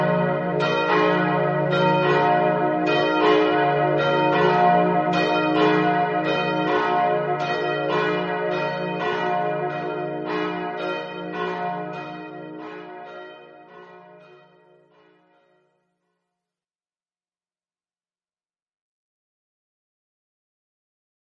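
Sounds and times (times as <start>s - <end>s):
bells ringing: 0.0s - 15.4s.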